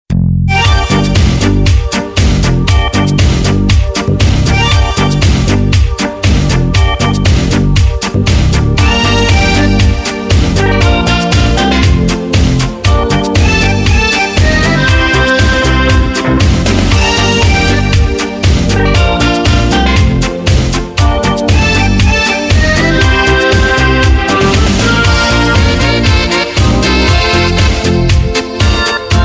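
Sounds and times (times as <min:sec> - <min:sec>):
Korg Pa3X arranger keyboard: 0:00.2 - 0:29.2.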